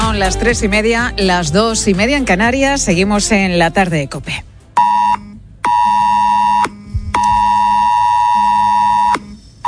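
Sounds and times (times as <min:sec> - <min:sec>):
speech: 0:00.2 - 0:04.5
mobile phone emergency alert tone: 0:04.8 - 0:09.6.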